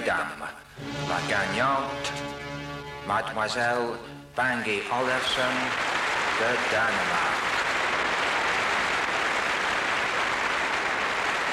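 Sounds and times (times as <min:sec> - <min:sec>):
speech: 0:00.1 - 0:02.5, 0:03.1 - 0:07.4
audience applause: 0:04.8 - 0:11.5.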